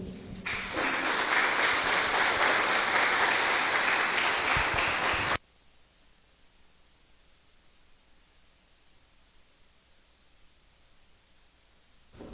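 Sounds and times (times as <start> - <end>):
applause from an assembly: 0.4 - 5.4.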